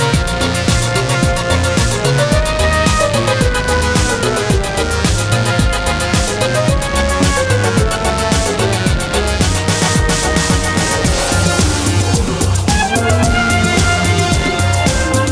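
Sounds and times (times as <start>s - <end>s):
jungle drum beat: 0.0s - 15.3s.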